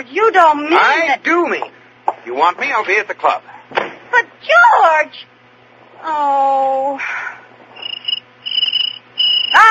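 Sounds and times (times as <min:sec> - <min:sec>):
speech: 0:00.0 - 0:05.3, 0:06.0 - 0:07.4
cricket chirping: 0:07.7 - 0:09.6.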